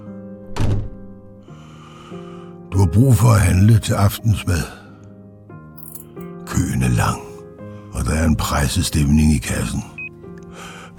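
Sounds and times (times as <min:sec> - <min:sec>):
door slamming: 0:00.5 - 0:01.2
speech: 0:02.8 - 0:04.8, 0:08.4 - 0:10.0.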